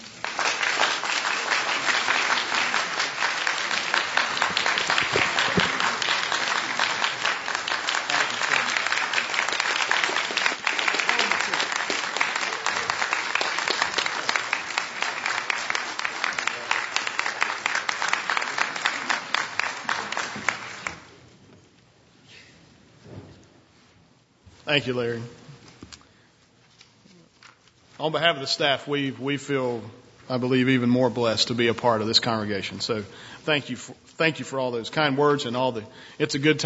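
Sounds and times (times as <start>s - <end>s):
audience applause: 0.0s - 21.1s
speech: 24.7s - 25.4s, 28.0s - 36.6s.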